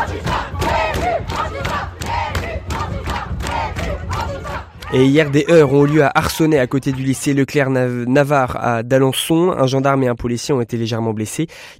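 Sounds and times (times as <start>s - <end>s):
protesters chanting in front of the Bellevue school: 0.0s - 7.4s
speech: 4.9s - 11.7s.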